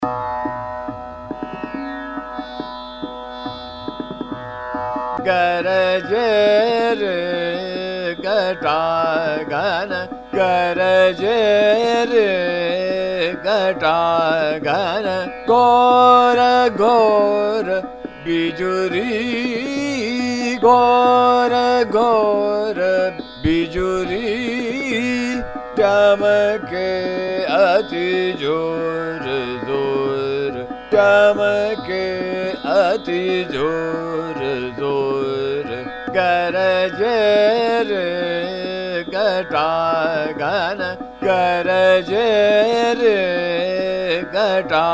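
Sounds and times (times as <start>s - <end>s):
Hindustani chota khyal in fast ektaal: 5.2s - 44.9s.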